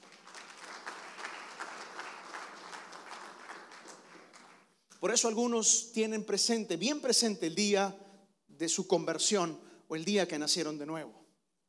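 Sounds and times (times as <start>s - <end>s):
audience applause: 0.0s - 4.6s
speech: 5.0s - 8.0s, 8.6s - 11.2s.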